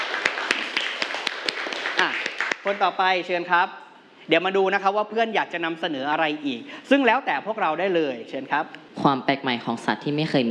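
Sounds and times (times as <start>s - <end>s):
classroom applause for a student's presentation: 0.0s - 2.9s
speech: 2.0s - 10.4s.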